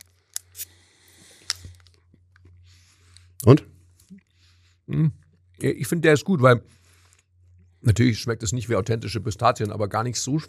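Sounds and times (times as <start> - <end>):
chewing and crunching during a white chocolate pistachio taste test: 0.0 - 3.3
speech: 3.4 - 3.7, 4.9 - 6.8, 7.8 - 10.4.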